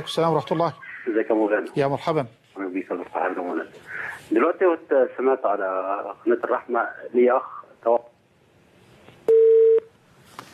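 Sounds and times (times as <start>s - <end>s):
speech: 0.0s - 8.0s
telephone beep after a call-in caller's line dropped: 9.3s - 9.9s.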